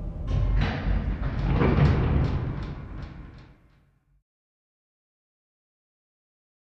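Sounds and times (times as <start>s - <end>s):
heavy industrial steel door closing: 0.2s - 3.8s.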